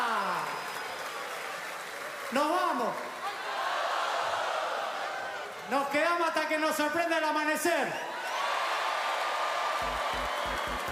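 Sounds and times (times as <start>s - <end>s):
audience applause: 0.0s - 5.6s, 8.3s - 10.9s
speech: 2.3s - 2.6s, 6.6s - 8.2s.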